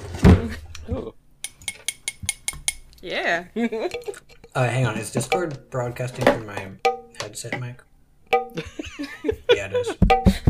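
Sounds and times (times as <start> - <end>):
glass clinking next to the microphone: 1.4 - 2.8
speech: 3.0 - 10.4
laughter: 8.6 - 10.4.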